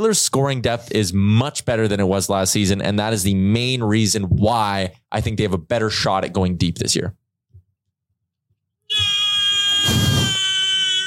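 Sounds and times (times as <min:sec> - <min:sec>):
speech: 0:00.0 - 0:07.2
person imitating a horse whinny: 0:08.9 - 0:11.0.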